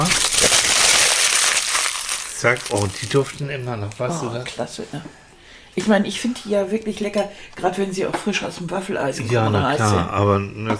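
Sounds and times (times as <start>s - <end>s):
aluminium foil crinkling: 0.0s - 3.4s
speech: 2.4s - 5.2s, 5.8s - 10.7s.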